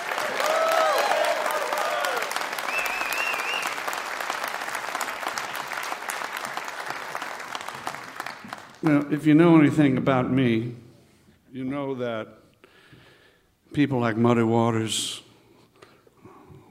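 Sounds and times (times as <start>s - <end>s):
audience applause: 0.0s - 9.2s
speech: 8.8s - 10.8s, 11.6s - 12.4s, 13.8s - 15.2s.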